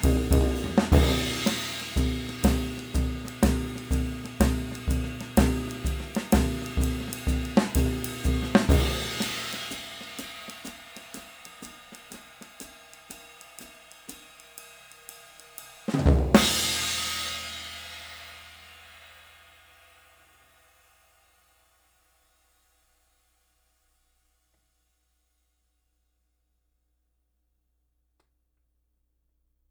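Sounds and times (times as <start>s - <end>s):
20 inch swish cymbal: 0.0s - 20.2s.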